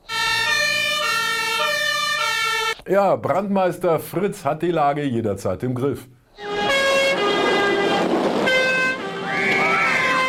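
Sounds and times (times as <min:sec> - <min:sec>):
fire engine siren: 0:00.0 - 0:02.8, 0:06.4 - 0:10.2
speech: 0:02.9 - 0:06.5.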